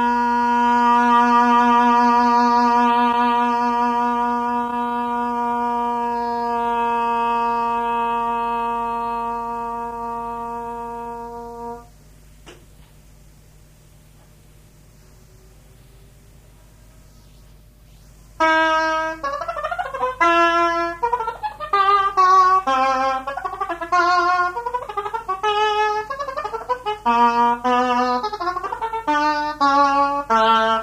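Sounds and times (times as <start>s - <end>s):
oboe: 0.0s - 11.9s, 18.4s - 30.8s.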